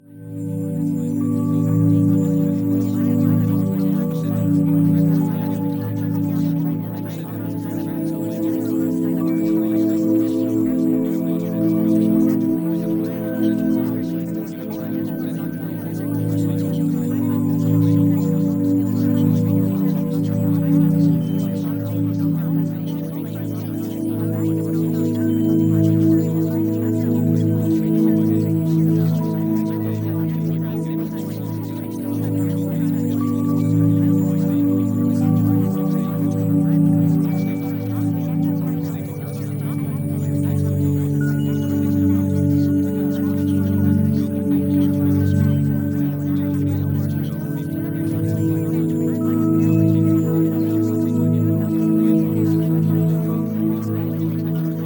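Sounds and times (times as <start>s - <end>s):
music: 0.0s - 54.8s.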